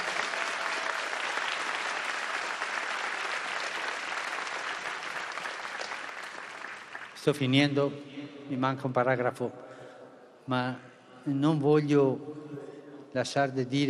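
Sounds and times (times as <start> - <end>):
crowd applause: 0.0 - 7.3
speech: 7.2 - 9.6, 10.5 - 12.6, 13.2 - 13.8.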